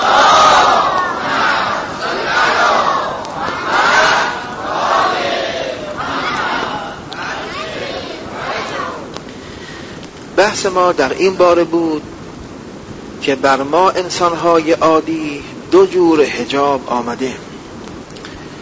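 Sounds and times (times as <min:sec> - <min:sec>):
large crowd at a religious gathering reciting salawat in unison: 0:00.0 - 0:09.2
speech: 0:10.6 - 0:12.1, 0:13.2 - 0:17.5.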